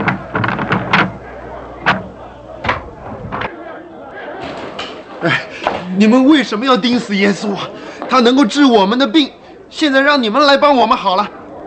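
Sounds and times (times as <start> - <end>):
sharp thuds and bangs: 0.0 - 3.5
noisy city crowd clamor: 0.0 - 8.0
speech: 5.2 - 5.4, 6.0 - 11.4.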